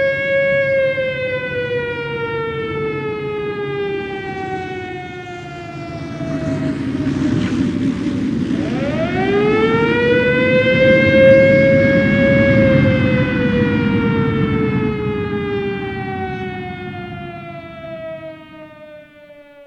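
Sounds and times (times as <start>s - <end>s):
siren: 0.0s - 19.6s.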